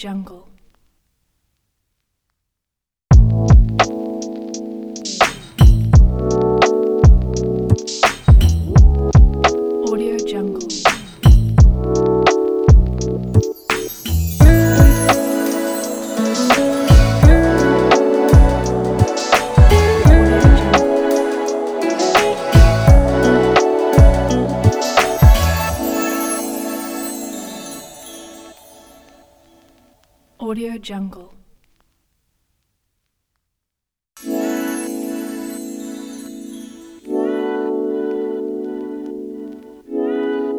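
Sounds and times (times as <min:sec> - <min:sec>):
soft chill hop music: 0:03.2 - 0:29.2, 0:34.2 - 0:40.5.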